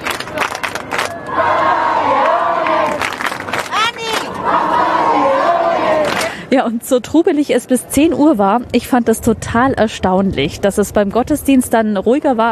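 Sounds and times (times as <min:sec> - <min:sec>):
large crowd cheering and shouting for the popemobile: 0:00.0 - 0:06.3
speech: 0:06.5 - 0:12.5.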